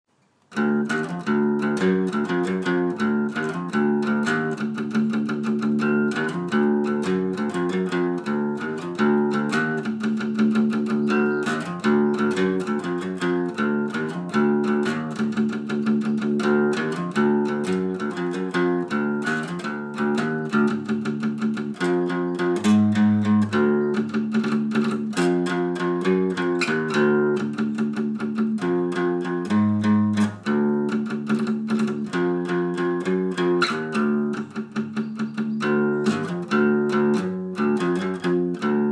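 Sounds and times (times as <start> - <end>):
acoustic hardcore music: 0.6 - 38.9.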